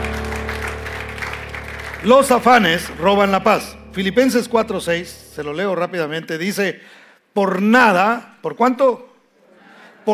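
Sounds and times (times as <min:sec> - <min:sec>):
audience applauding: 0:00.0 - 0:03.7
speech: 0:02.0 - 0:09.1.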